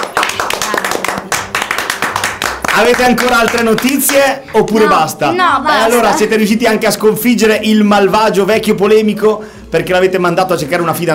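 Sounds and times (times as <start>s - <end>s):
children clapping: 0.0s - 4.4s
speech: 2.8s - 11.1s.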